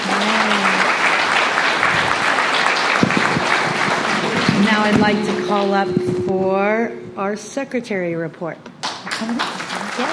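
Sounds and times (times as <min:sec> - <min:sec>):
audience applause at a meeting: 0:00.0 - 0:05.4, 0:08.8 - 0:10.1
speech: 0:04.8 - 0:10.1.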